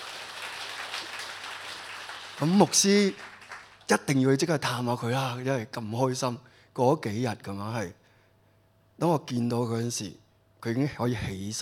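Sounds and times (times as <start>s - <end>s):
faint applause from a church congregation: 0.0s - 3.9s
speech: 2.4s - 3.3s, 3.9s - 8.0s, 9.0s - 11.5s.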